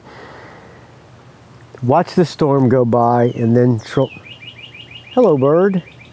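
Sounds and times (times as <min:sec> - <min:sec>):
birds singing: 0:01.6 - 0:06.1
speech: 0:01.8 - 0:04.2, 0:05.2 - 0:06.0.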